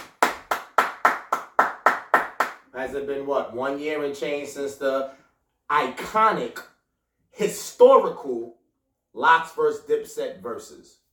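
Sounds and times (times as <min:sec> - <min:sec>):
clapping: 0:00.0 - 0:02.7
speech: 0:02.8 - 0:06.7, 0:07.4 - 0:08.6, 0:09.2 - 0:11.0.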